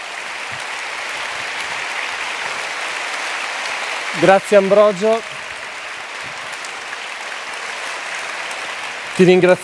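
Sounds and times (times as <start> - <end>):
audience applause: 0.0 - 9.6
speech: 4.2 - 5.3, 9.2 - 9.6.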